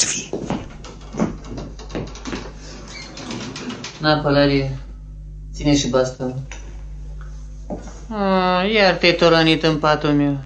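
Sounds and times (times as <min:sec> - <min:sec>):
knocking on a door: 0:00.4 - 0:02.6
speech: 0:04.0 - 0:04.8, 0:05.6 - 0:06.6, 0:07.7 - 0:10.4.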